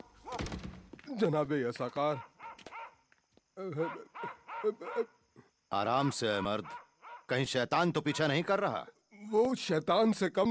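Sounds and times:
speech: 1.2s - 2.3s, 3.6s - 10.5s
wild dangerous dog barking: 2.2s - 3.0s, 3.8s - 5.1s, 6.4s - 7.3s.

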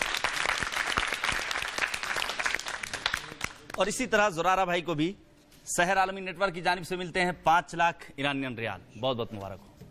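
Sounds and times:
audience applause: 0.0s - 3.6s
speech: 3.8s - 9.7s.

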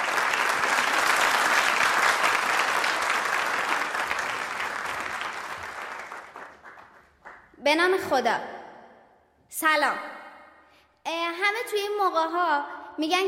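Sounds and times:
audience applause: 0.0s - 7.6s
speech: 7.7s - 8.6s, 9.5s - 10.2s, 11.1s - 13.2s.

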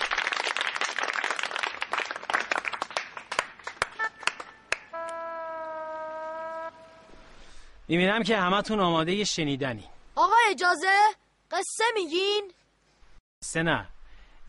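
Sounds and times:
children clapping and applauding: 0.0s - 5.2s
sustained tonal horn-like sound: 4.0s - 7.3s
speech: 7.9s - 9.9s, 10.5s - 12.6s, 13.4s - 13.9s.

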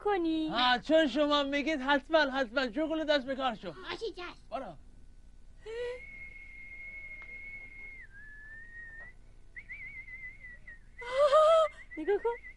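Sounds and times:
speech: 0.0s - 4.8s, 12.0s - 12.5s
whistling imitating a nightingale: 6.0s - 12.5s.

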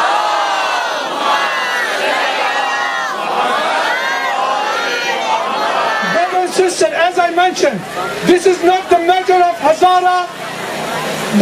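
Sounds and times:
crowd loudly chanting salawat: 0.0s - 7.1s
speech: 7.3s - 10.5s.

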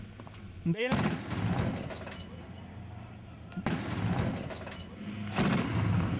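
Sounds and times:
heavy weapons fire from Syrian army units on Al-Nisr mountain near Kasab: 0.8s - 2.0s, 3.6s - 4.7s, 5.3s - 6.1s.

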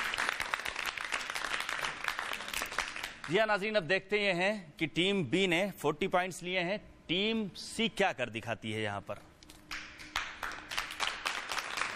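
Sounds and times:
audience applause: 0.0s - 3.3s, 10.1s - 11.9s
speech: 3.3s - 9.3s.

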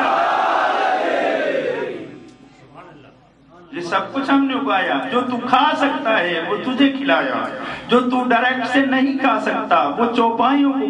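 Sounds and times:
crowd at a religious sermon shouting a slogan: 0.0s - 2.2s
speech: 3.9s - 10.8s.

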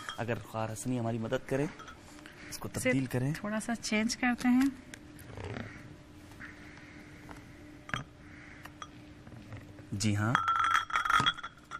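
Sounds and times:
glasses clinking: 0.0s - 2.2s, 7.9s - 8.2s, 10.0s - 11.7s
speech: 0.2s - 5.8s, 10.0s - 10.5s.

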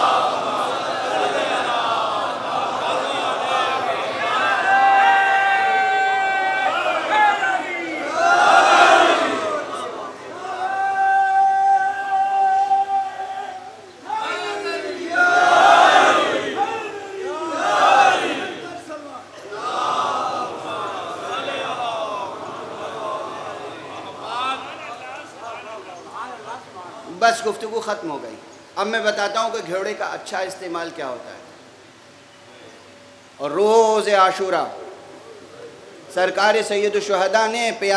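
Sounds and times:
large audience chanting salawat in unison: 0.0s - 27.1s
speech: 27.4s - 31.4s, 33.4s - 34.8s, 36.2s - 37.9s.

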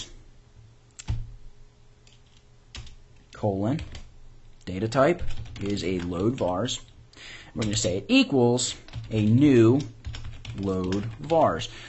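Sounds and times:
faint steady hum: 0.0s - 11.8s
computer keyboard typing code: 2.0s - 3.0s, 3.8s - 4.1s, 5.2s - 6.9s, 7.6s - 8.0s, 8.7s - 11.7s
speech: 3.4s - 4.0s, 4.7s - 10.0s, 10.6s - 11.8s.

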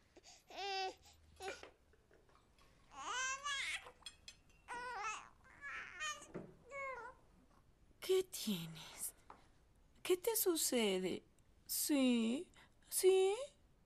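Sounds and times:
baby girl crying and whimpering after waking up: 0.5s - 1.6s, 2.9s - 4.0s, 4.7s - 7.2s
speech: 8.4s - 9.0s, 10.2s - 11.3s, 11.9s - 13.6s.

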